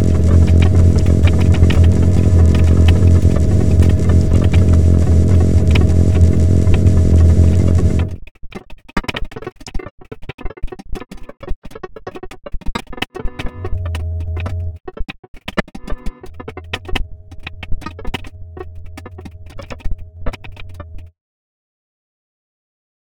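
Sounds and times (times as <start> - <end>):
granular texture: 0.0 - 8.2, 13.2 - 14.9, 15.9 - 21.1.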